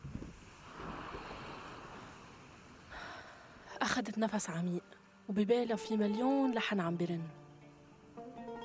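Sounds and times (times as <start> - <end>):
sea waves washing against rocks beneath the seafront at Raouche in Beirut: 0.0 - 2.9
wind blowing over the sea at Raouche in Beirut: 0.0 - 3.6
speech: 3.8 - 7.4.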